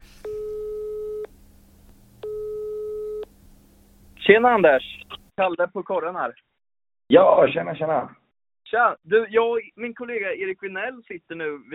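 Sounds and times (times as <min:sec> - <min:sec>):
phone ringing tone while a call connects: 0:00.2 - 0:01.3, 0:02.2 - 0:03.3
speech: 0:04.3 - 0:06.4, 0:07.1 - 0:11.7.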